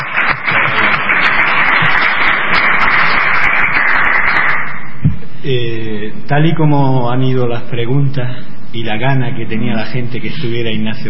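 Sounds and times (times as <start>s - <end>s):
crowd applause: 0.0s - 4.9s
speech: 5.5s - 11.0s.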